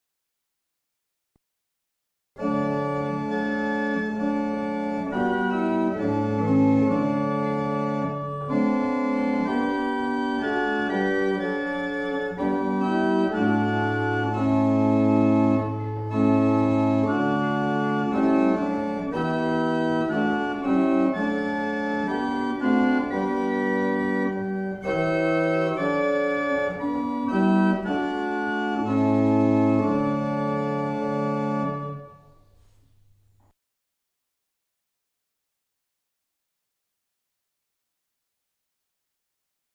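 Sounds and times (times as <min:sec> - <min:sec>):
barrel organ: 0:02.4 - 0:32.9.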